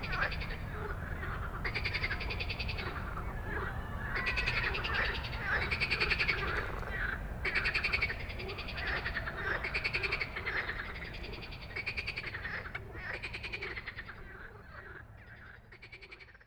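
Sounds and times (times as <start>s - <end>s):
frog chorus rattling: 0.0s - 16.4s.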